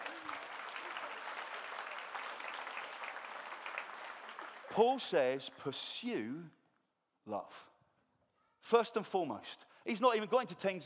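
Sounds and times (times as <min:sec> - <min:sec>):
room audience round of applause: 0:00.0 - 0:05.2
speech: 0:04.7 - 0:06.6, 0:07.2 - 0:07.7, 0:08.6 - 0:10.8.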